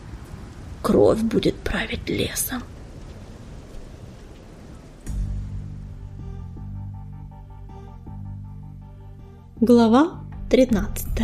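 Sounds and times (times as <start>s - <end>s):
heavy rain downpour: 0.0s - 7.3s
speech: 0.8s - 2.7s, 9.6s - 11.2s.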